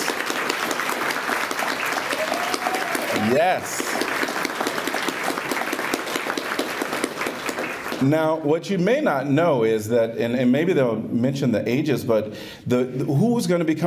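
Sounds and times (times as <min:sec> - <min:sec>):
audience applause: 0:00.0 - 0:08.1
person cheering: 0:02.0 - 0:04.0
speech: 0:03.2 - 0:04.1, 0:08.0 - 0:13.8.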